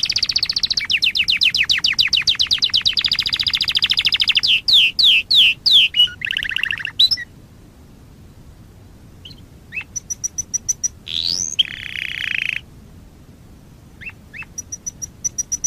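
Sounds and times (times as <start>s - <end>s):
Waterslager canary singing a high pulsed trill: 0.0s - 7.3s, 9.2s - 12.6s, 14.0s - 15.6s.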